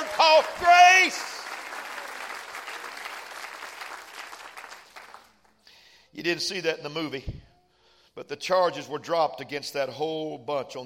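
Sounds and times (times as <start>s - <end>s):
audience clapping hands: 0.0s - 5.6s
speech: 0.2s - 1.3s, 6.2s - 7.5s, 8.2s - 10.8s.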